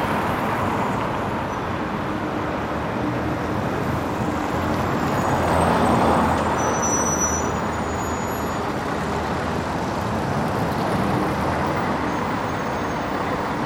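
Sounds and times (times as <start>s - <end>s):
cars and semi trailer trucks passing and stopping in a rush hour traffic queue: 0.0s - 13.6s
high squeals from brakes: 5.0s - 8.9s, 12.1s - 13.6s.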